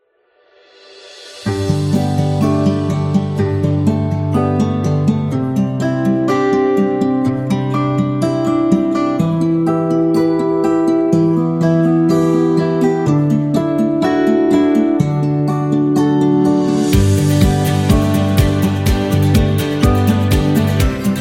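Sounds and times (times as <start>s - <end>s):
upbeat acoustic music: 1.4s - 21.1s.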